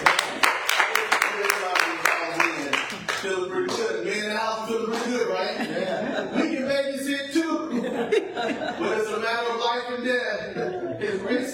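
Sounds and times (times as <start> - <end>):
crowd clapping: 0.0 - 3.9, 4.9 - 5.2
murmuring voices: 0.9 - 11.5
laughter: 4.8 - 11.5.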